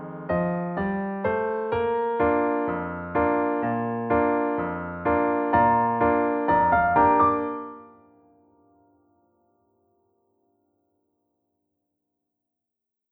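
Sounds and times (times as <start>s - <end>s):
piano: 0.0s - 10.5s.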